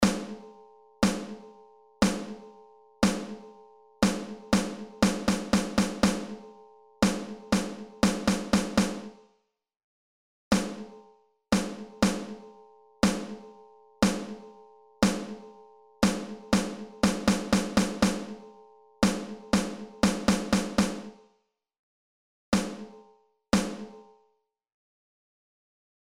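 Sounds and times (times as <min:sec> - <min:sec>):
snare drum rhythms: 0:00.0 - 0:00.4, 0:01.0 - 0:01.4, 0:02.0 - 0:02.4, 0:03.0 - 0:03.4, 0:04.0 - 0:06.4, 0:07.0 - 0:09.2, 0:10.6 - 0:10.9, 0:11.6 - 0:12.4, 0:13.0 - 0:13.4, 0:14.0 - 0:14.4, 0:15.0 - 0:15.4, 0:16.0 - 0:18.4, 0:19.0 - 0:21.2, 0:22.6 - 0:22.9, 0:23.6 - 0:24.0.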